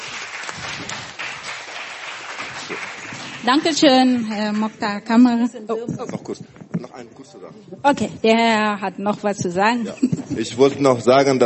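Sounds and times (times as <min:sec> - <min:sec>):
applause: 0:00.0 - 0:04.7
speech: 0:02.7 - 0:11.4.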